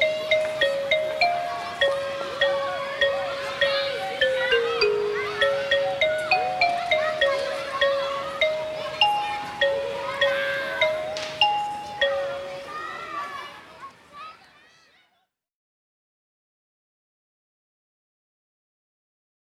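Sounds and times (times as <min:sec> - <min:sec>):
karaoke backing track: 0:00.0 - 0:12.4.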